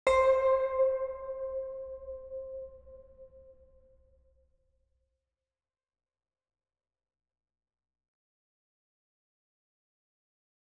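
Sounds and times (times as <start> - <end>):
ambient music: 0.1 - 3.6.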